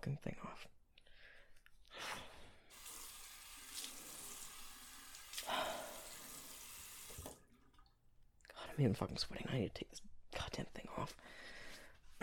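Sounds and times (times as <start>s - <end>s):
speech: 0.1s - 0.7s, 8.8s - 11.5s
tap water running into a sink: 2.7s - 7.9s.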